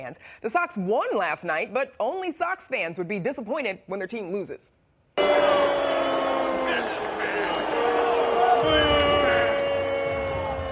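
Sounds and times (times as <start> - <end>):
speech: 0.0 - 5.8
baseball crowd booing: 5.2 - 10.7.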